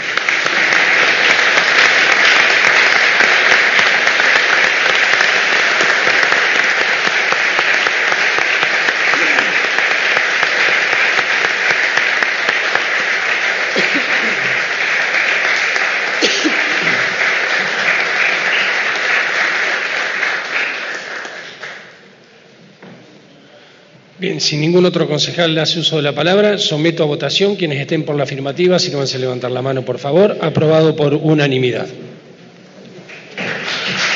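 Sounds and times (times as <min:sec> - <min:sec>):
audience applause: 0:00.0 - 0:22.1, 0:33.0 - 0:34.1
speech: 0:24.4 - 0:32.1.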